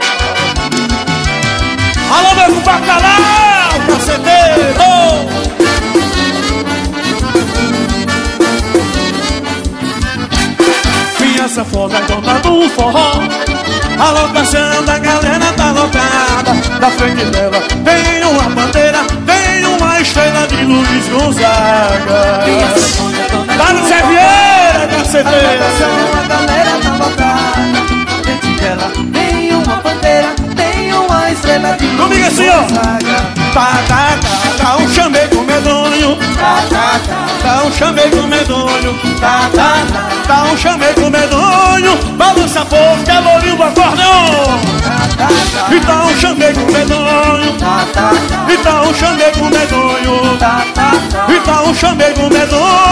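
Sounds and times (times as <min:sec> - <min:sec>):
live accordion playing forró: 0:00.0 - 0:52.9.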